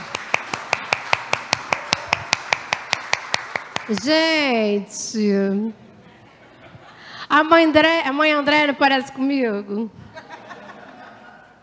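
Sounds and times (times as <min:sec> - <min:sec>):
audience clapping at a talk in a terreiro: 0:00.0 - 0:04.3
speech: 0:03.9 - 0:05.8, 0:07.3 - 0:10.0
laughter: 0:05.8 - 0:07.2, 0:10.0 - 0:11.6.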